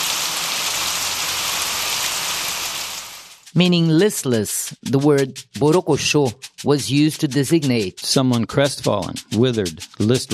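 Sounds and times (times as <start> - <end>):
water pouring down: 0.0 - 3.4
speech: 3.6 - 10.3.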